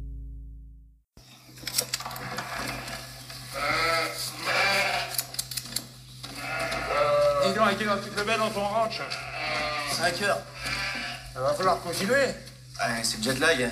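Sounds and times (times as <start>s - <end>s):
sheep bleating in a film scene: 2.4s - 5.2s, 6.3s - 7.7s, 8.8s - 11.4s
speech: 7.7s - 9.3s, 9.9s - 10.5s, 11.4s - 13.6s.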